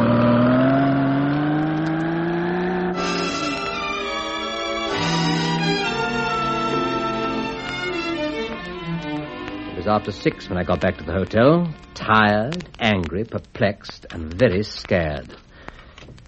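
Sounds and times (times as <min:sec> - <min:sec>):
car accelerating away: 0:00.0 - 0:07.6
speech: 0:09.9 - 0:15.4.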